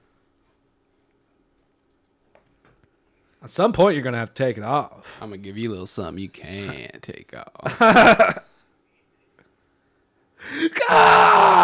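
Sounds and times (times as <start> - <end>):
speech: 3.4 - 8.4
man screaming in pain: 10.4 - 11.6.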